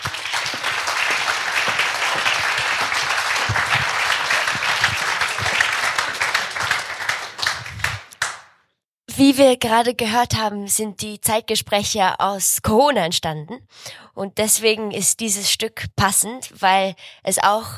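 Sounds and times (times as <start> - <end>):
audience applause: 0.0 - 8.5
speech: 9.2 - 17.7.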